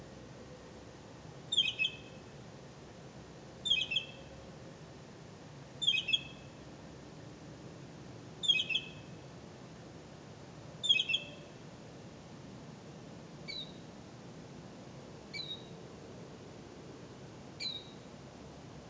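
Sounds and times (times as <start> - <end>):
bird high double chirps: 1.5 - 2.2, 3.6 - 4.2, 5.8 - 6.4, 8.4 - 9.1, 10.8 - 11.5.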